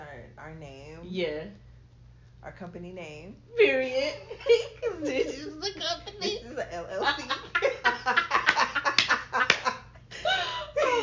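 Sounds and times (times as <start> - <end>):
speech: 0.5 - 1.6, 2.4 - 8.3
laughter: 7.0 - 11.0
sharp crisp hand claps: 8.4 - 9.8.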